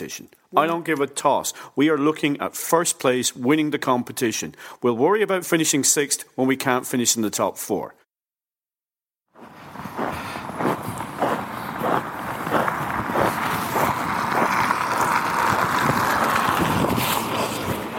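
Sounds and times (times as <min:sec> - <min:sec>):
speech: 0:00.1 - 0:08.0
constant wind noise: 0:09.4 - 0:17.9
footsteps walking outside a hotel on a freezing evening: 0:09.4 - 0:17.9.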